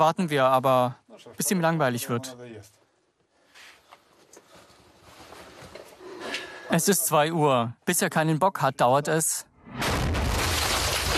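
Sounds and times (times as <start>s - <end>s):
speech: 0.0s - 2.8s, 6.7s - 9.8s
gunshot: 9.6s - 11.1s.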